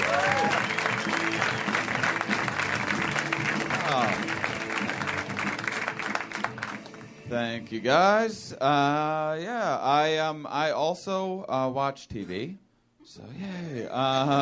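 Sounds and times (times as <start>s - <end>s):
comedy club audience applause welcoming a stand-up comedian: 0.0s - 7.1s
speech: 7.5s - 14.4s.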